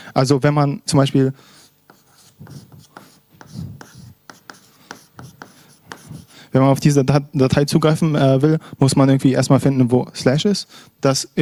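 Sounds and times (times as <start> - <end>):
speech: 0.2 - 1.6, 6.6 - 11.4
pen strokes drawing a diagram by hand: 1.6 - 6.4.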